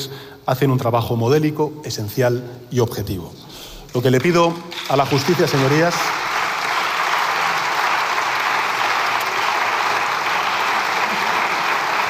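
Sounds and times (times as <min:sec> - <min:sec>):
speech: 0:00.0 - 0:06.2
applause from socialist parliamentary benches: 0:04.0 - 0:12.0.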